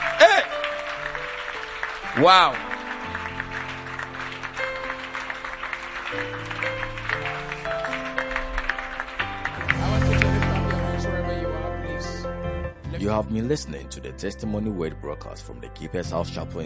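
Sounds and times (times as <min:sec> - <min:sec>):
audience clapping: 0:00.0 - 0:11.6
speech: 0:02.2 - 0:02.6, 0:13.0 - 0:16.6.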